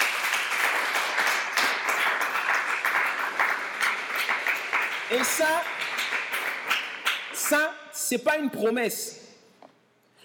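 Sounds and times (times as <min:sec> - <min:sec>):
congregation clapping at a church service: 0:00.0 - 0:07.8
speech: 0:05.1 - 0:05.8, 0:07.5 - 0:09.2.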